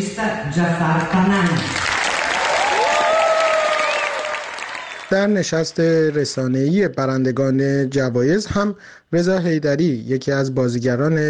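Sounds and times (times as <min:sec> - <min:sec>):
speech: 0:00.0 - 0:01.9, 0:05.1 - 0:11.2
standing ovation applause in the main hall of the Venice Film Festival: 0:01.6 - 0:06.4.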